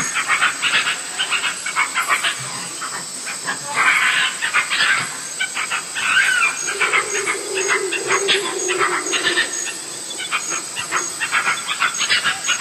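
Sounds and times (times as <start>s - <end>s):
monkey chatter: 0.0s - 12.6s
high hiss: 5.9s - 12.1s.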